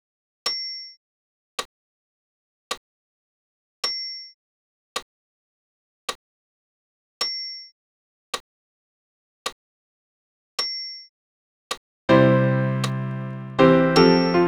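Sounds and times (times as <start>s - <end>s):
piano: 12.1s - 14.4s.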